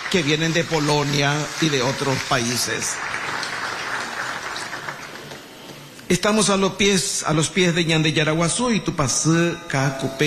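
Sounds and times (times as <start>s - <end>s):
audience applause at a Sunday church service: 0.0s - 6.0s
speech: 0.1s - 3.3s, 6.1s - 10.2s.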